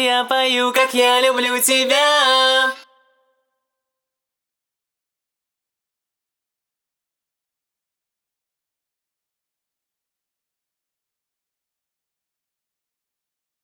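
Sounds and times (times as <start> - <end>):
a cappella singing at 130 bpm: 0.0 - 3.3.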